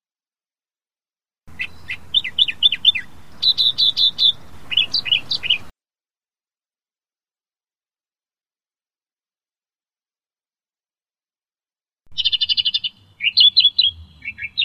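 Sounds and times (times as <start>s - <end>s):
Australian reed warbler song: 1.5s - 5.7s, 12.1s - 14.6s.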